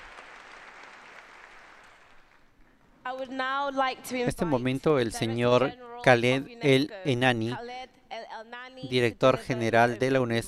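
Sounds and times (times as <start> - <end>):
sustained applause from a large audience welcoming a visitor: 0.0 - 2.5
speech: 3.1 - 7.8, 8.8 - 10.4.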